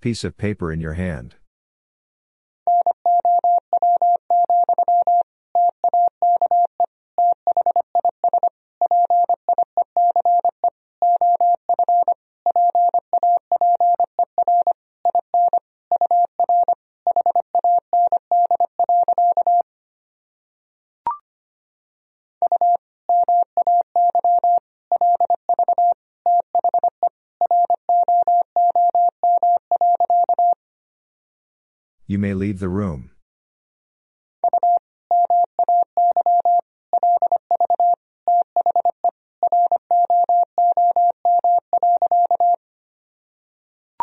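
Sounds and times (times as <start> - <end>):
speech: 0.0 - 1.4, 32.1 - 33.1
fast Morse code tones at 25 wpm: 2.7 - 19.6, 22.5 - 30.6, 34.4 - 42.6.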